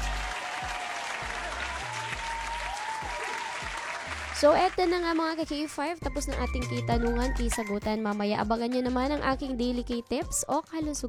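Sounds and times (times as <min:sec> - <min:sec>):
audience applause: 0:00.0 - 0:05.4
speech: 0:04.4 - 0:11.0.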